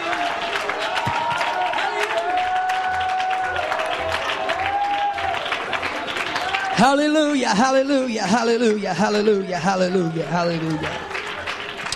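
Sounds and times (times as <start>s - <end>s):
audience shouting: 0.0s - 5.4s, 9.1s - 11.5s
audience clapping: 0.0s - 11.9s
speech: 6.8s - 11.1s.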